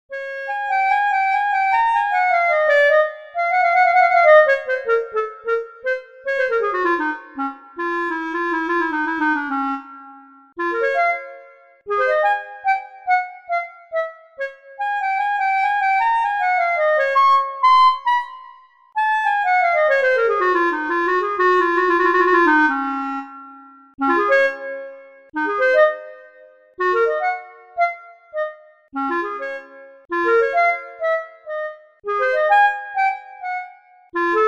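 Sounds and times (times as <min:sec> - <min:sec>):
clarinet: 0:00.1 - 0:34.4.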